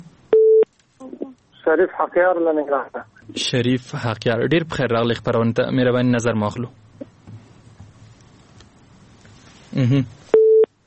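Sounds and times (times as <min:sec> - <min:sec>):
phone busy tone after a cut-off call to Jordan: 0:00.3 - 0:00.6, 0:10.3 - 0:10.7
speech: 0:01.7 - 0:06.8, 0:09.9 - 0:10.2.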